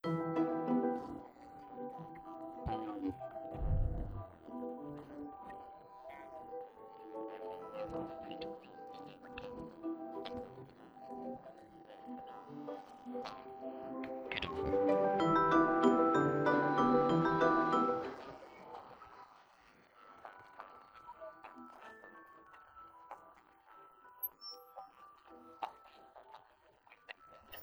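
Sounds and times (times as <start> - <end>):
musical instruments playing: 0.0 - 4.3, 12.6 - 18.4.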